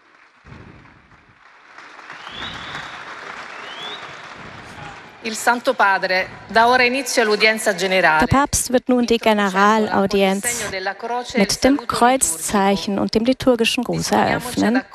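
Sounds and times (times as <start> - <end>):
audience applause as pope takes seat: 0.0 - 5.8
speech: 5.2 - 14.9.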